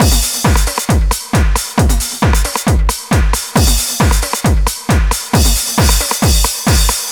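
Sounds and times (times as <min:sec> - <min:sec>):
drum loop: 0:00.0 - 0:07.0.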